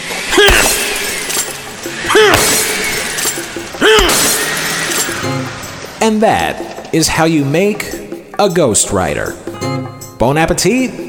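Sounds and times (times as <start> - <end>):
glass shattering as something is smashed with a sledgehammer: 0.3 - 5.3
speech: 6.1 - 11.0.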